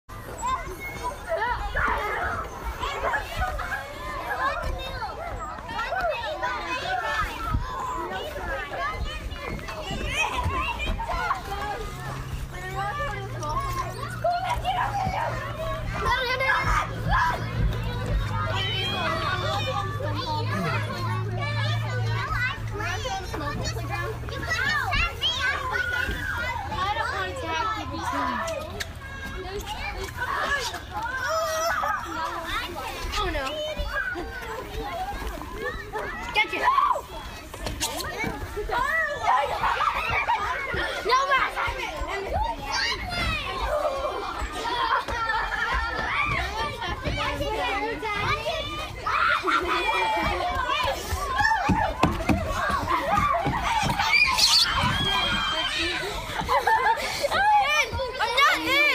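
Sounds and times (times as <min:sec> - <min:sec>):
children playing: 0:00.0 - 0:58.9
laughter: 0:54.7 - 0:58.9.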